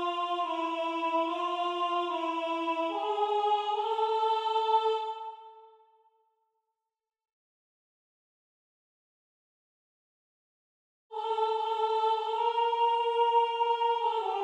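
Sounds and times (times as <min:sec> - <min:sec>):
alto voice singing: 0:00.0 - 0:05.7, 0:11.1 - 0:14.4.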